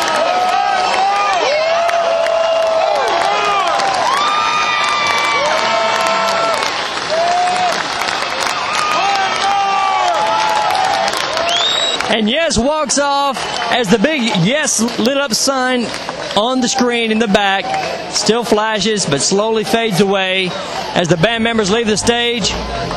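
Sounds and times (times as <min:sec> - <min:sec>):
large concert crowd cheering and applause at band's final bow: 0:00.0 - 0:18.1, 0:19.5 - 0:22.9
whoops and high shouts from concert crowd: 0:00.1 - 0:07.8, 0:08.7 - 0:12.0
speech: 0:12.1 - 0:22.9.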